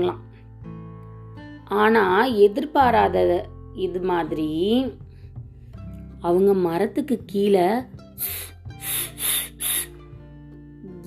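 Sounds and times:
speech: 0.0 - 0.3, 1.7 - 5.0, 6.2 - 9.4
snake hissing: 8.2 - 10.0.

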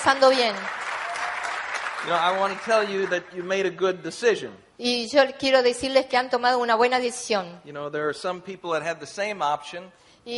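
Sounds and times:
speech: 0.0 - 0.8, 2.0 - 10.3
audience applause: 0.0 - 3.7.

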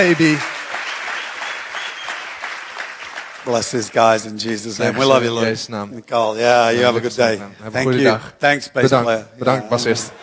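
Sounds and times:
speech: 0.0 - 0.5, 3.4 - 10.2
church audience applauding a group of church founders: 0.0 - 4.8.

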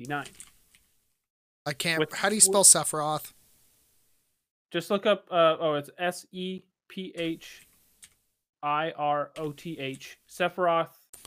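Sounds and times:
speech: 0.0 - 0.5, 1.6 - 3.4, 4.7 - 7.6, 8.6 - 11.2
keys clicking on a computer keyboard: 0.2 - 0.8.

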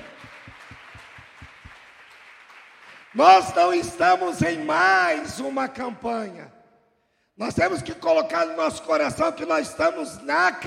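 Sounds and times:
audience applause: 0.0 - 3.6
speech: 3.1 - 6.6, 7.4 - 10.6.

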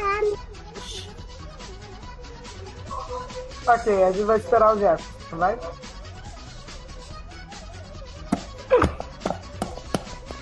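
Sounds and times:
speech: 3.7 - 5.8
garlic being pounded to make rice: 8.3 - 10.4.

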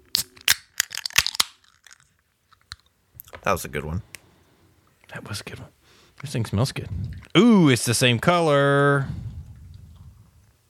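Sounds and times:
drink cans cracked open: 0.1 - 2.9
speech: 3.4 - 4.1, 5.1 - 9.3.

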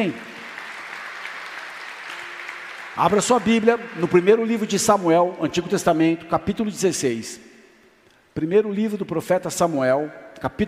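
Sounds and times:
speech: 0.0 - 0.3, 3.0 - 7.5, 8.4 - 10.6
audience applauding: 0.0 - 5.6.

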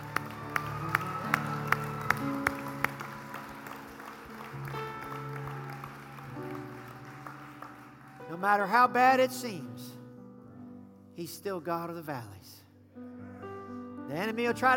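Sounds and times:
congregation hand clap of praise: 0.0 - 8.8
speech: 8.4 - 9.9, 11.2 - 12.6, 14.1 - 14.7.

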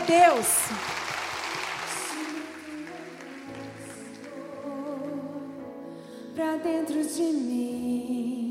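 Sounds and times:
audience applauding: 0.0 - 4.7
speech: 0.1 - 1.0, 6.4 - 8.4.

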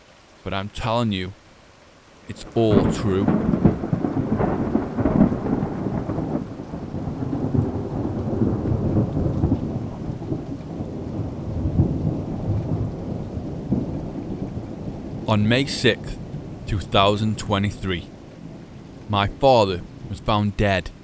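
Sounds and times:
steady rainfall: 0.0 - 21.0
speech: 0.4 - 1.4, 2.3 - 3.5, 15.3 - 18.1, 19.1 - 21.0
rolling thunder: 2.7 - 15.3.

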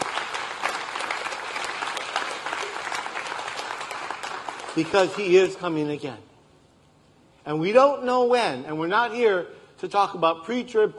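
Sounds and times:
crowd applauding: 0.0 - 5.5
speech: 4.8 - 6.3, 7.4 - 10.9.

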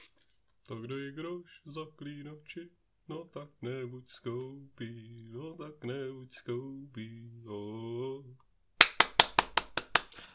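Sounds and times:
speech: 0.7 - 8.5
hand clapping: 8.8 - 10.3.

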